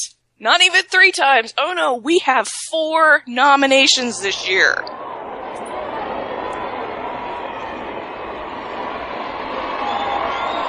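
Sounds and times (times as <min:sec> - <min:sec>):
speech: 0:00.0 - 0:05.0
audience cheering: 0:03.8 - 0:10.6.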